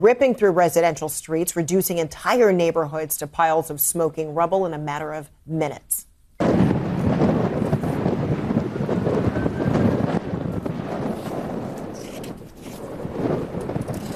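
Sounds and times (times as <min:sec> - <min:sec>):
speech: 0:00.0 - 0:06.1
ferocious howling wind fueling wildfire: 0:06.4 - 0:14.1.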